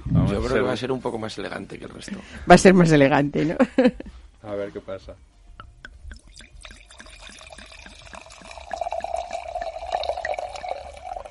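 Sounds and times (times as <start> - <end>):
speech: 0.3 - 5.4
laughter: 3.4 - 4.1
Pinot Noir red wine pouring into a glass: 5.9 - 11.3.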